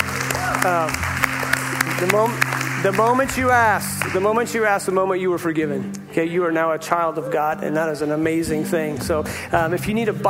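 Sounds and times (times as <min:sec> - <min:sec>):
audience clapping: 0:00.0 - 0:05.0
speech: 0:00.6 - 0:01.1, 0:02.0 - 0:10.2.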